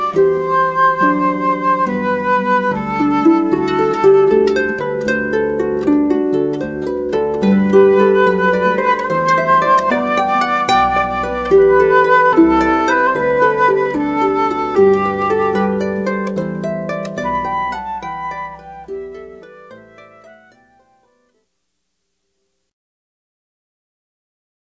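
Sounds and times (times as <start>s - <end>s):
flute in a duo: 0.0s - 5.8s, 7.3s - 21.2s
harp in a duo: 0.0s - 21.4s.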